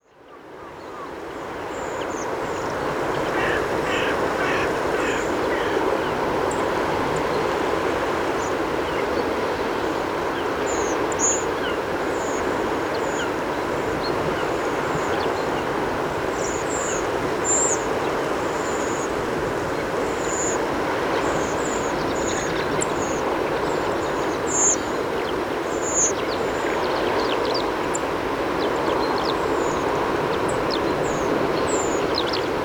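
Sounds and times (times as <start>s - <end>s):
migrating songbirds singing: 0.0s - 32.6s.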